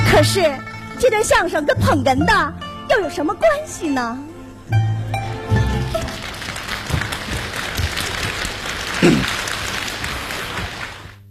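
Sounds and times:
speech: 0.2s - 4.8s
audience applauding a xiangsheng crosstalk comedy performance: 5.1s - 11.2s.

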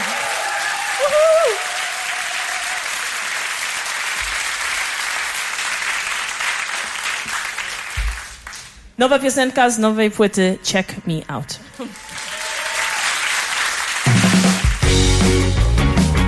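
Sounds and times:
whistle and cheer: 0.0s - 2.7s
audience applauding: 0.0s - 8.8s, 11.6s - 15.6s
speech: 9.0s - 12.2s.

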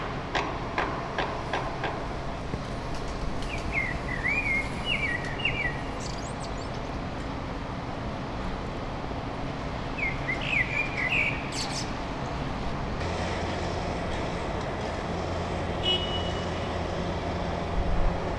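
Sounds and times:
construction noise: 0.0s - 18.3s
traffic rumble: 0.0s - 18.3s
Common Blackbird singing: 3.4s - 6.8s, 10.0s - 12.0s.

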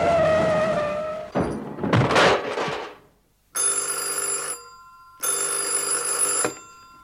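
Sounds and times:
car skidding out of control with tire squeal: 0.0s - 1.4s
rough, noisy rumble of skidding car: 0.0s - 3.2s
telephone ringing at a police precinct: 3.6s - 7.0s.

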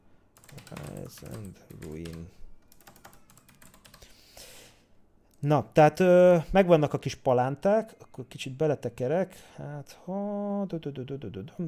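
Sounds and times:
typing on a computer keyboard: 0.4s - 4.1s
speech: 1.1s - 2.4s, 5.4s - 11.6s.

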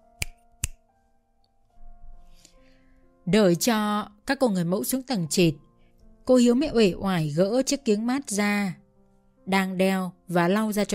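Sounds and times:
soft sustained musical tone: 0.0s - 10.9s
finger snaps given as a signal: 0.1s - 0.8s
speech: 3.3s - 5.6s, 6.3s - 8.8s, 9.5s - 10.9s.

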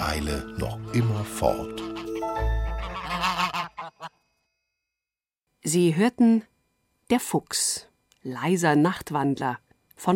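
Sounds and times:
speech: 0.2s - 3.5s, 5.6s - 6.5s, 7.1s - 10.1s
goose honks: 1.6s - 4.2s.

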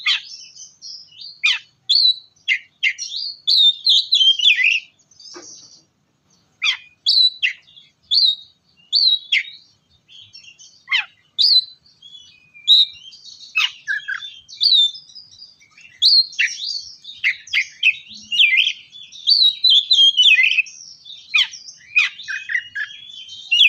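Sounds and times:
Oriental magpie-robin song: 0.0s - 23.6s.

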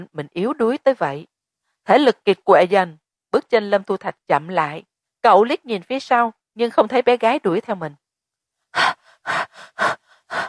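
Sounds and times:
speech: 0.0s - 8.0s
heavy panting breaths: 8.7s - 10.4s.

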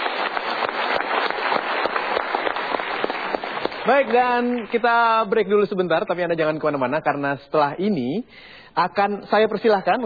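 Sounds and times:
studio audience applause: 0.0s - 5.1s
speech: 3.9s - 10.0s.

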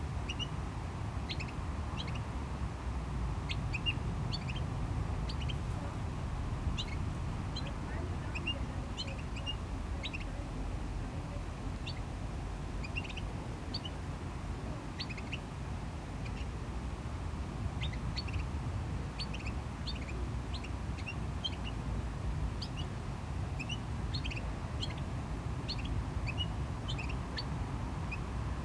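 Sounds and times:
traffic: 0.0s - 28.6s
small bird chirping: 0.2s - 0.6s, 1.2s - 2.4s, 3.4s - 10.5s, 11.8s - 12.1s, 12.8s - 14.0s, 14.9s - 15.5s, 16.2s - 16.6s, 17.8s - 18.5s, 19.2s - 21.8s, 22.5s - 28.3s.

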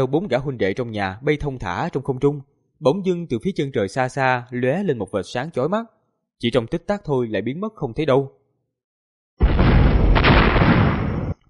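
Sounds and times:
speech: 0.0s - 8.4s
heavy explosion booms: 9.4s - 11.4s.

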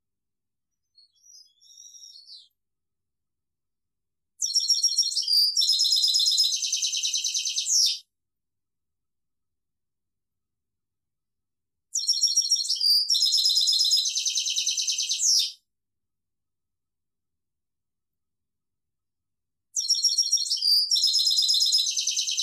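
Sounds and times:
European goldfinch singing: 1.0s - 2.5s, 4.4s - 8.0s, 12.0s - 15.5s, 19.8s - 22.4s.

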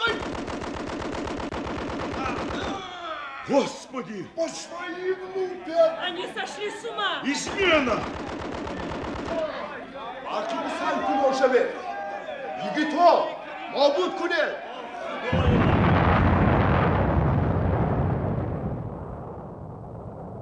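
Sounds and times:
agitated people shouting: 0.0s - 0.3s, 2.0s - 15.9s
rapid gunfire: 0.0s - 2.9s, 7.4s - 9.7s
speech: 3.5s - 8.5s, 10.4s - 11.9s, 12.6s - 15.5s
explosion blowing up a cave entrance: 15.3s - 20.4s.

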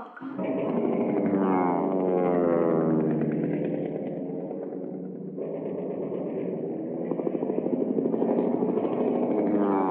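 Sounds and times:
many propeller airplane engines droning across the sky: 0.2s - 9.8s.

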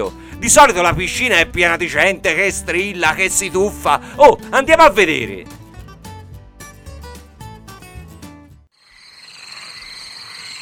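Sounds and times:
speech: 0.0s - 5.6s
short stretch of music: 0.0s - 8.7s
chorus of many frogs croaking in a swimming pool: 8.8s - 10.6s.

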